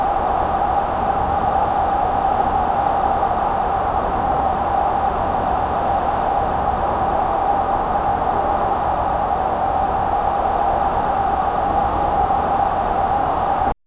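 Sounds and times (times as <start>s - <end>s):
natural white noise in winter: 0.0s - 13.7s.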